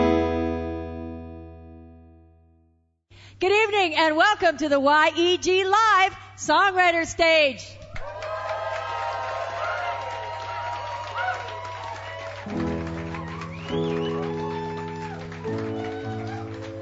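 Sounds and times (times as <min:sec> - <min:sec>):
speech: 0:03.4 - 0:07.8
audience cheering and whooping at a live songwriter stage in a pub: 0:07.9 - 0:16.8.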